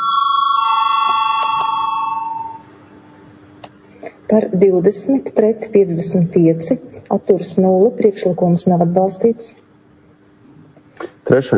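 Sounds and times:
parliamentary voting call electric bell ringing: 0.0 - 2.7
room hum: 0.0 - 11.5
speech: 4.3 - 9.6, 11.3 - 11.5.

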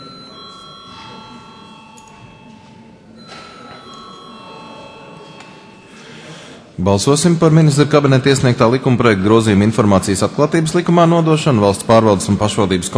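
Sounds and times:
parliament chamber electric bell ringing: 0.0 - 6.6
murmur and shuffling: 0.0 - 12.9
speech: 6.8 - 12.9.

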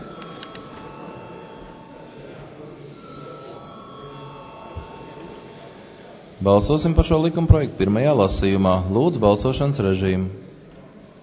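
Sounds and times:
parliament chamber electric bell ringing before a vote: 0.0 - 7.3
low murmur: 0.0 - 11.2
speech: 6.4 - 10.4.

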